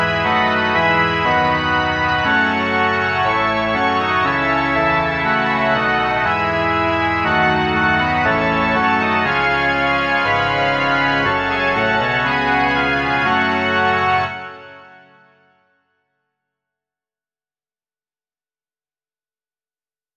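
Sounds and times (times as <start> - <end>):
pipe organ: 0.0 - 15.5.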